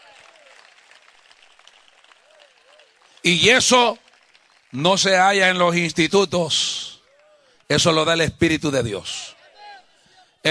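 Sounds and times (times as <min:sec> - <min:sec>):
audience applause: 0:00.0 - 0:05.9
speech: 0:03.2 - 0:04.0, 0:04.7 - 0:06.8, 0:07.7 - 0:09.4.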